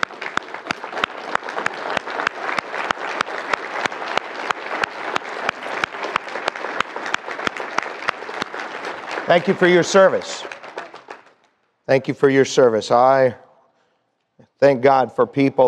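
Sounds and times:
steady applause from a large crowd: 0.0s - 11.5s
speech: 9.3s - 10.5s, 11.9s - 13.4s, 14.6s - 15.6s.

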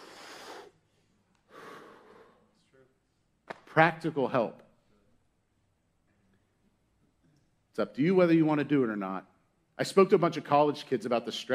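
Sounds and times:
deep breaths as a breathing demonstration: 0.0s - 2.5s
speech: 3.8s - 4.6s, 7.8s - 11.5s.

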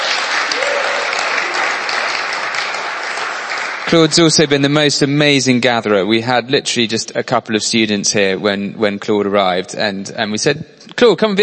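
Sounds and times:
audience's big round of applause: 0.0s - 4.3s
speech: 3.9s - 11.4s.

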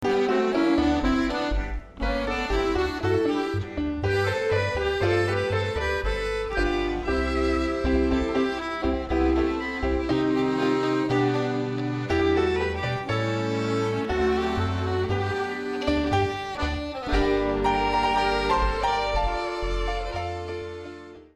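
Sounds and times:
tango music: 0.0s - 21.3s.

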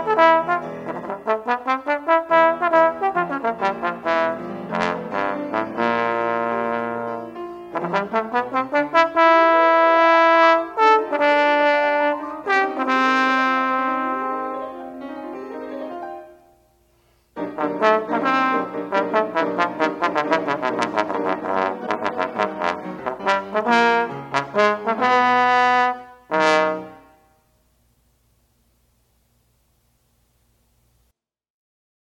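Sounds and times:
trombone: 0.0s - 16.3s, 17.4s - 27.5s
piano: 0.0s - 30.7s.

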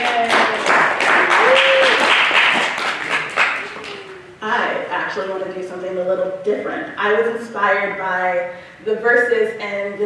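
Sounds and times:
audience applause: 0.0s - 4.2s
speech: 5.2s - 10.0s.

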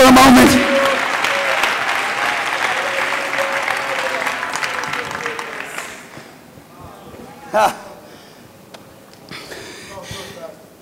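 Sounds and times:
room full of people applauding: 0.0s - 6.6s
speech: 7.6s - 7.8s.

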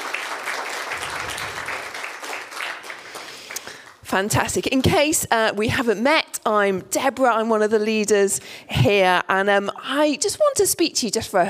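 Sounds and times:
crowd applause: 0.0s - 3.9s
speech: 4.1s - 11.4s.

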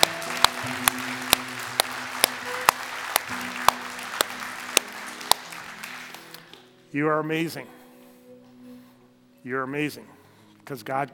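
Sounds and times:
audience applause: 0.0s - 6.6s
speech: 6.9s - 7.8s, 9.4s - 11.1s.

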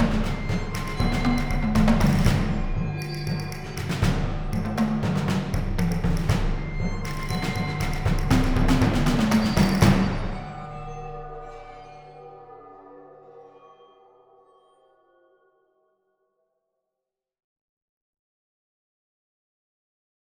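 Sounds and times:
funk music: 0.0s - 10.5s.

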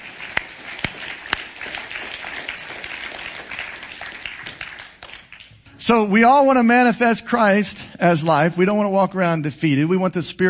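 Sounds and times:
audience clapping hands: 0.0s - 5.8s
speech: 5.9s - 10.4s.

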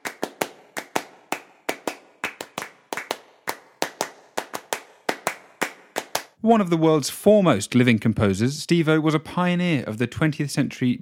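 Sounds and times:
rhythmic hand clapping from a minimalist composition: 0.0s - 6.4s
speech: 6.4s - 11.0s.

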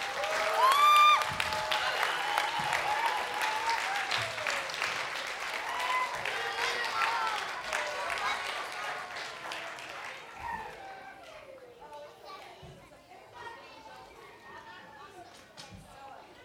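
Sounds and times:
whoops and cheers: 0.0s - 4.9s, 5.5s - 8.3s
crowd clapping: 0.0s - 12.0s.

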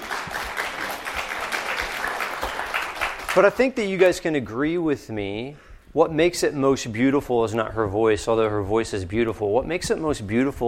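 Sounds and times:
audience applause: 0.0s - 3.6s
speech: 3.4s - 10.6s.

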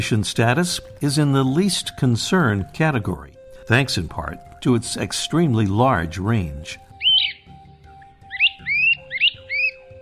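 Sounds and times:
speech: 0.0s - 6.8s
great crested flycatcher whistled calls: 6.8s - 9.9s.

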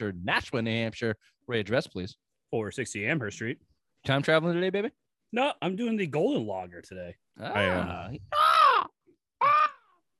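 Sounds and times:
speech: 0.0s - 8.5s
person imitating an eagle's cry: 7.4s - 9.8s.

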